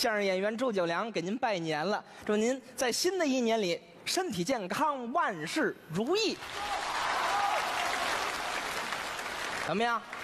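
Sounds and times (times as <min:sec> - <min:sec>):
speech: 0:00.0 - 0:07.0, 0:09.7 - 0:10.2
audience applause at a New Year crosstalk comedy show: 0:06.4 - 0:10.2.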